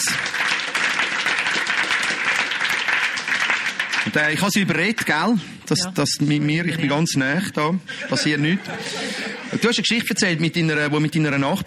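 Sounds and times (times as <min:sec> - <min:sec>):
audience applause: 0:00.0 - 0:05.4
speech: 0:04.1 - 0:11.6
laughter: 0:06.4 - 0:09.9.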